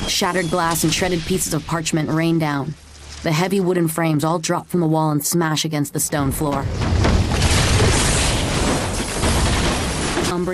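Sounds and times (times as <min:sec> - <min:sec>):
speech: 0:00.1 - 0:07.0
magical firework explosion: 0:06.9 - 0:10.3.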